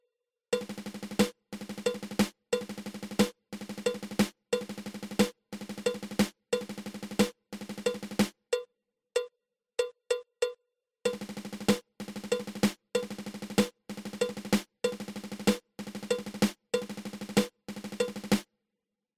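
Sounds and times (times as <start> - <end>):
nine stroke drum roll: 0.5 - 8.3, 11.1 - 18.5.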